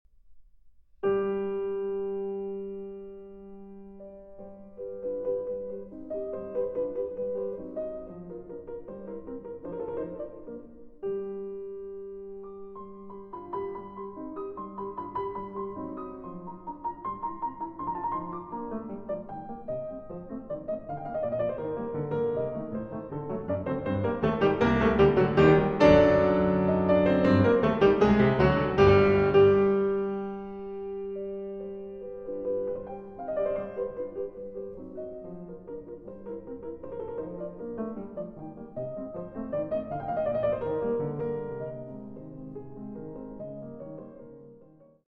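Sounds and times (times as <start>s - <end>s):
piano sonata movement: 0.1s - 45.0s.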